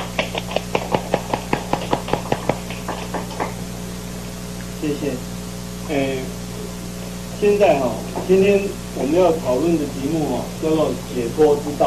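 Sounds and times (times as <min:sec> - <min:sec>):
applause: 0:00.0 - 0:03.6
low constant hum: 0:00.0 - 0:11.8
speech: 0:04.8 - 0:06.4, 0:07.4 - 0:11.8.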